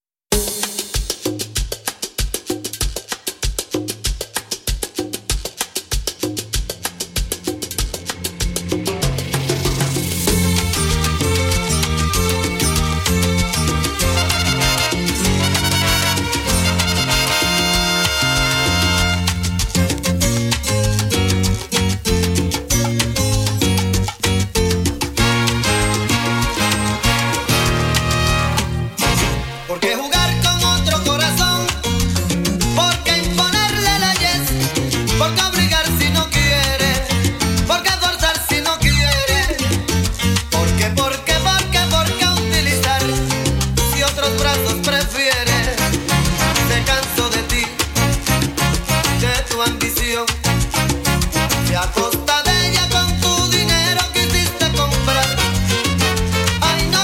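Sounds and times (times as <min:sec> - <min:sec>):
salsa music: 0:00.3 - 0:57.0.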